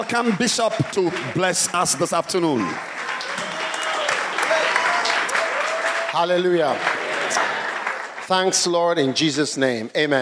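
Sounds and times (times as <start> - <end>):
speech: 0.0 - 3.1, 6.1 - 7.4, 8.3 - 10.2
crowd applauding: 0.0 - 9.3.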